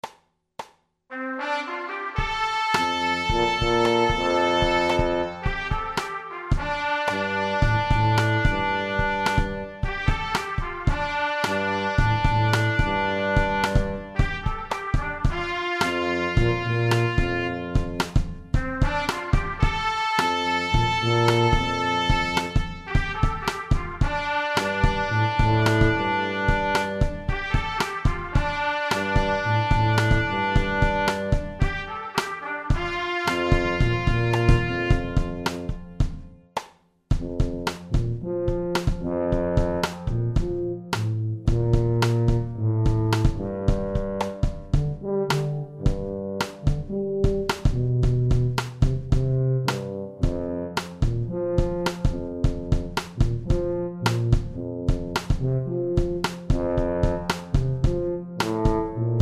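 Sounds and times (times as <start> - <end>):
blues tuba: 1.1 - 36.4, 37.2 - 59.1.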